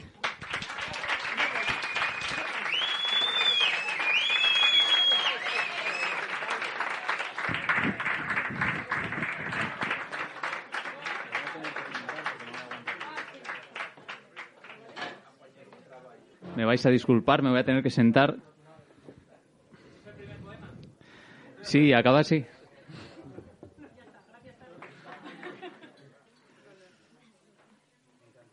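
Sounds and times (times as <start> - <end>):
audience applause: 0.0 - 14.8
speech: 16.6 - 18.5, 21.7 - 22.6
laughter: 22.9 - 26.2.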